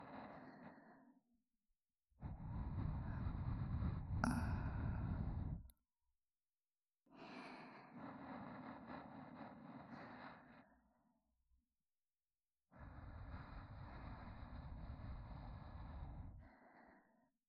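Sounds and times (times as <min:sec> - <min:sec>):
looping sleep companion audio track with reversed position: 0:00.0 - 0:01.3, 0:02.2 - 0:05.7, 0:07.2 - 0:11.2, 0:12.8 - 0:17.3.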